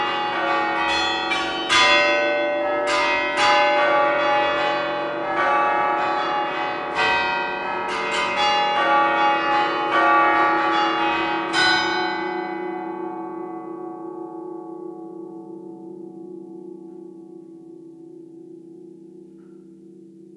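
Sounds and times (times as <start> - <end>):
bells ringing: 0.0 - 13.8.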